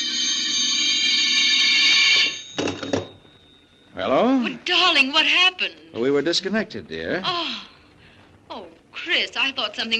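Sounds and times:
telephone ringing: 0.0s - 5.6s
speech: 4.9s - 7.7s, 8.6s - 9.9s.

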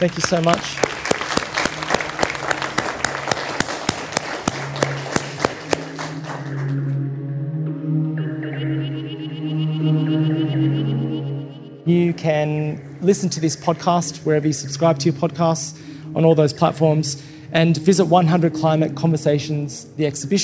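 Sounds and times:
speech: 0.0s - 0.9s, 12.5s - 20.4s
audience applause: 0.0s - 6.9s
sustained tonal music: 0.0s - 20.4s.

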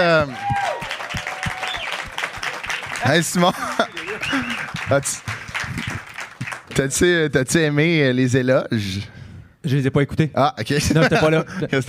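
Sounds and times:
speech: 0.0s - 0.7s, 3.0s - 5.9s, 6.8s - 11.8s
audience applause: 0.3s - 6.9s
laughter: 3.2s - 4.9s, 10.8s - 11.8s.

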